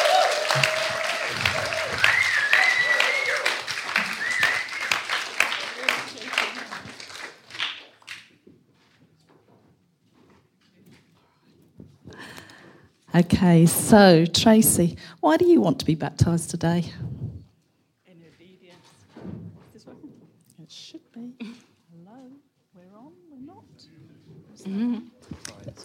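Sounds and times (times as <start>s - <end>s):
church congregation applauding at a baptism service: 0.0s - 8.3s
speech: 13.2s - 17.1s.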